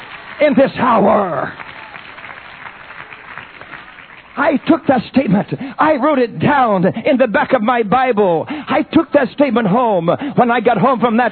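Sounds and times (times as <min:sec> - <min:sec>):
congregation clapping in worship: 0:00.0 - 0:05.6
speech: 0:00.4 - 0:01.6, 0:04.4 - 0:11.2.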